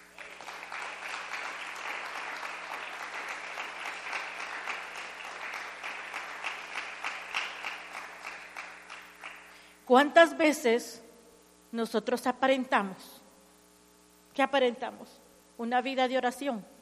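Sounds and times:
audience clapping hands: 0.0s - 9.7s
speech: 9.9s - 11.0s, 11.7s - 13.2s, 14.4s - 16.7s.

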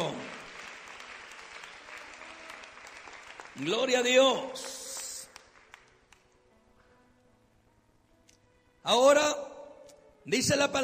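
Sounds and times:
audience applauding: 0.0s - 6.3s
speech: 3.6s - 4.8s, 8.9s - 9.5s, 10.3s - 10.8s.

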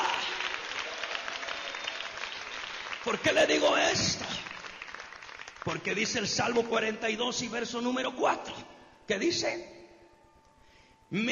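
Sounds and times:
church congregation applauding during a service: 0.0s - 7.0s
speech: 3.1s - 4.4s, 5.7s - 9.8s, 11.1s - 11.3s.

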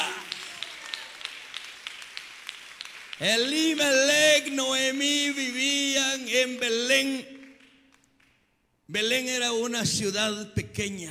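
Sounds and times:
applause: 0.0s - 8.4s
speech: 3.2s - 7.3s, 8.9s - 11.0s.

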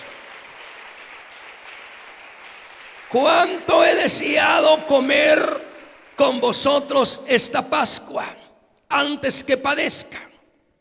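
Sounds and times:
church congregation applauding during a sermon: 0.0s - 7.6s
speech: 3.1s - 5.6s, 6.2s - 10.3s.

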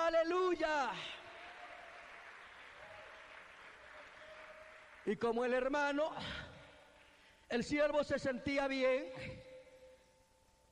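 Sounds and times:
speech: 0.2s - 1.2s, 5.1s - 6.5s, 7.5s - 9.5s
audience applause: 1.2s - 5.3s.

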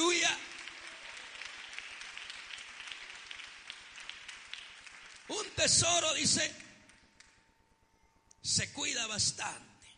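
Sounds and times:
crowd clapping: 0.0s - 7.4s
speech: 5.6s - 6.6s, 8.4s - 9.7s.

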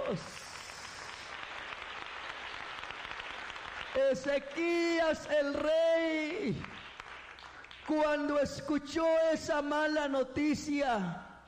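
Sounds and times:
audience applause: 0.0s - 8.2s
speech: 0.1s - 0.4s, 4.0s - 6.8s, 7.9s - 11.3s.

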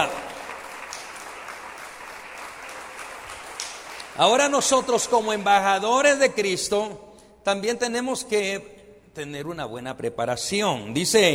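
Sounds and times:
audience applause: 0.0s - 5.5s
speech: 4.2s - 11.3s.

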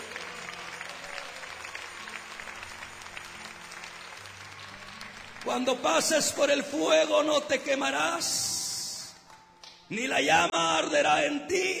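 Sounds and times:
audience applause: 0.0s - 7.3s
speech: 5.4s - 8.6s, 9.9s - 11.7s.

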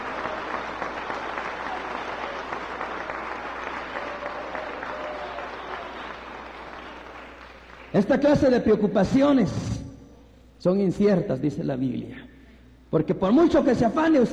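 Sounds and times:
sustained dense applause from a large crowd: 0.0s - 8.5s
speech: 7.9s - 9.8s, 10.6s - 12.3s, 12.9s - 14.3s.

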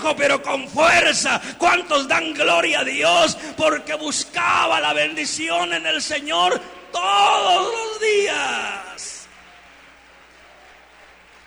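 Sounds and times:
speech: 0.0s - 9.1s
audience applause: 9.2s - 11.4s.

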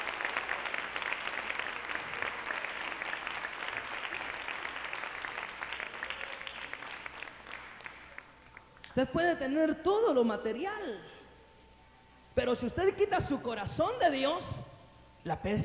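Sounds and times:
audience applause: 0.0s - 8.8s
speech: 9.0s - 11.2s, 12.4s - 14.6s, 15.2s - 15.6s.

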